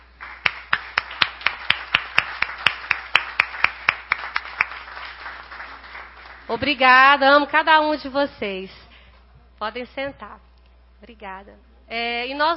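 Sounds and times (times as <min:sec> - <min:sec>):
crowd audience applauding: 0:00.0 - 0:06.6
speech: 0:06.5 - 0:08.8, 0:09.6 - 0:12.5.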